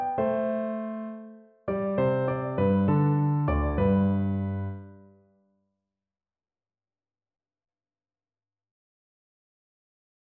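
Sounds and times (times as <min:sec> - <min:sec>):
pastorale piano piece: 0:00.0 - 0:05.2.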